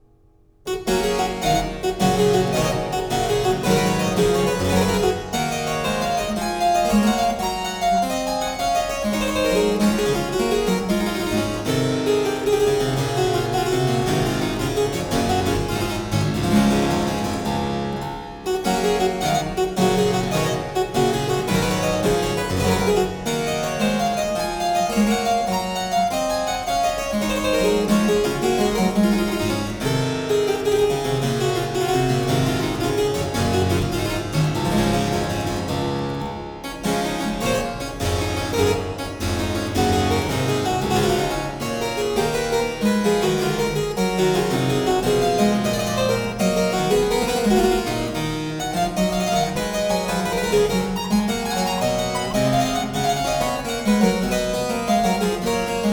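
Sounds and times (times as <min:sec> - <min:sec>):
harpsichord suite in G minor: 0:00.0 - 0:55.9.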